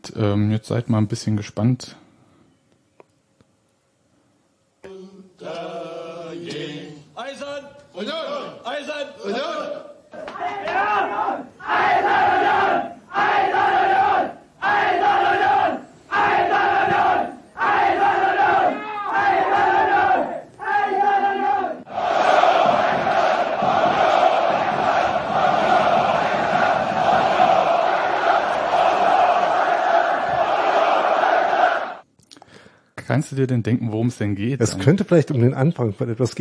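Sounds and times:
speech: 0.1 - 2.0, 33.4 - 36.3
football fans chanting a battle cry: 4.9 - 7.1, 9.6 - 32.0
whole crowd roaring: 10.1 - 32.0.

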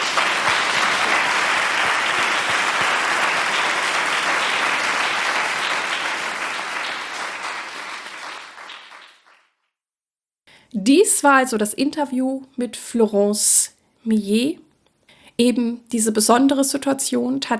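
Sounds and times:
audience applause: 0.0 - 9.4
speech: 10.9 - 14.6, 15.4 - 17.5.

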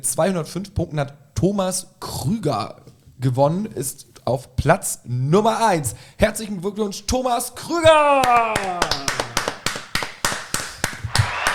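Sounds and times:
speech: 0.0 - 9.0
sparse applause: 7.9 - 11.5.

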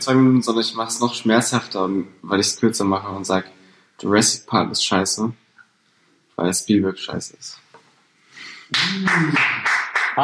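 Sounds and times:
speech: 0.0 - 5.4, 6.4 - 7.6, 8.7 - 10.2
hand clapping applause: 8.7 - 10.2.

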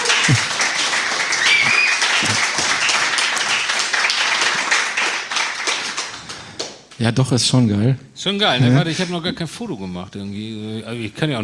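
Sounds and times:
audience clapping: 0.0 - 7.1
speech: 0.3 - 0.6, 7.0 - 11.4.

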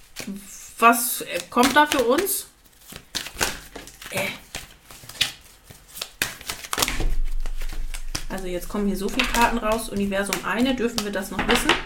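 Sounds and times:
cards shuffled by hand during a spiritual card reading: 0.0 - 11.8
speech: 0.2 - 2.5, 8.4 - 11.8.

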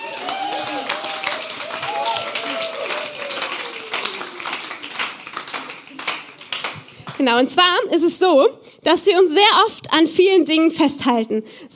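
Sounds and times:
voices calling out: 0.0 - 4.8
audience clapping: 0.0 - 7.5
speech: 7.2 - 11.7.

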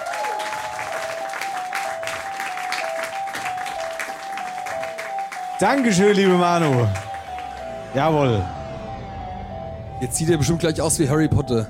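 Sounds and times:
audience applause: 0.0 - 7.9
speech: 5.6 - 7.0, 7.9 - 8.6, 10.0 - 11.6.

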